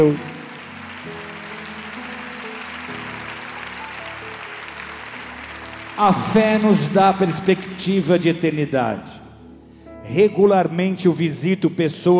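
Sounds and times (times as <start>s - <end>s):
speech: 0.0s - 0.3s, 6.0s - 9.2s, 10.0s - 12.1s
audience applauding: 0.0s - 8.7s.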